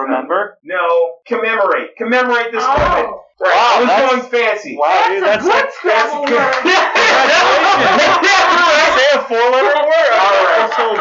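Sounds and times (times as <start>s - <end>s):
speech: 0.0s - 10.9s
cheering and laughing voices: 4.9s - 10.9s
crowd clapping: 5.8s - 9.0s, 10.2s - 10.9s.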